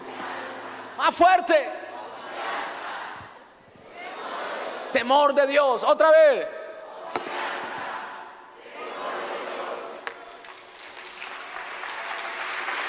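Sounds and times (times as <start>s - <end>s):
speech: 1.0s - 1.8s, 4.9s - 6.6s
audience applause: 10.0s - 12.8s.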